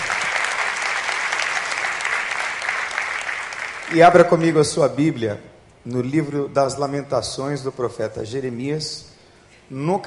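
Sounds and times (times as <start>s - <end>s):
audience applauding loudly: 0.0s - 4.5s
speech: 3.9s - 9.1s, 9.7s - 10.0s.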